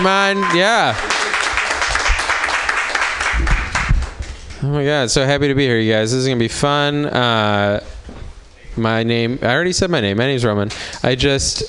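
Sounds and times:
speech: 0.0 - 1.1, 4.6 - 7.9, 8.8 - 11.6
audience applause: 0.0 - 4.2.

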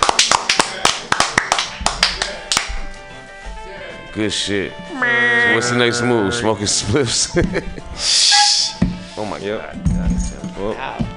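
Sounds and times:
small group clapping for a graduate: 0.0 - 2.8
speech: 4.2 - 8.3, 9.4 - 11.0.

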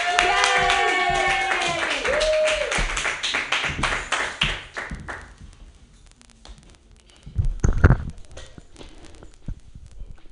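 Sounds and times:
person whooping: 0.0 - 3.0
open-mic comedy audience clapping for a comedian: 0.0 - 5.4.

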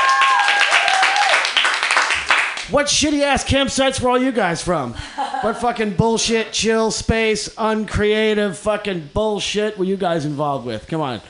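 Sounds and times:
audience clapping: 0.0 - 2.7
speech: 2.7 - 11.2.

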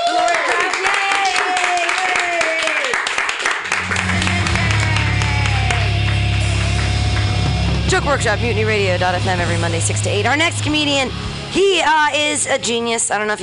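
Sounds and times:
audience clapping: 0.0 - 8.4
low sustained hum: 3.8 - 13.0
tonal sounds: 3.8 - 13.4
speech: 8.1 - 13.4.

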